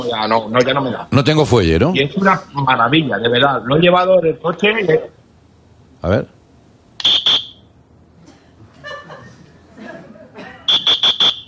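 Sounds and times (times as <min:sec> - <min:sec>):
speech: 0:00.0 - 0:05.2, 0:06.0 - 0:06.4
shrill whistle blasts: 0:07.0 - 0:07.7, 0:10.7 - 0:11.4
laughter: 0:08.2 - 0:10.7.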